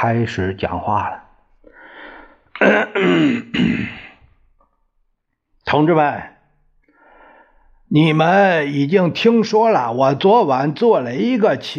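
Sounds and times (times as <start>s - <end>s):
speech: 0.0s - 1.2s, 2.6s - 4.0s, 5.7s - 6.3s, 7.9s - 11.7s
soft breathy exhale: 1.6s - 2.5s, 6.9s - 7.8s
gruff throat clearing: 2.6s - 4.4s.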